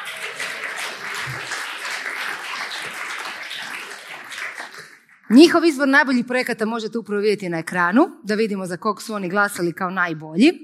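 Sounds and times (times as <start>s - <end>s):
audience applause at an advertising awards event: 0.0s - 5.2s
speech: 5.3s - 10.6s.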